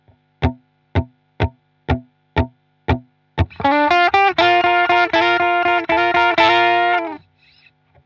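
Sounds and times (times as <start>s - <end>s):
blues guitar: 2.9s - 7.2s.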